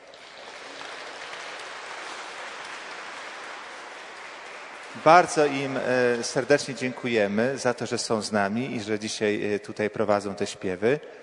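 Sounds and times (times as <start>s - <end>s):
crowd clapping: 0.0s - 7.7s
speech: 4.9s - 11.2s.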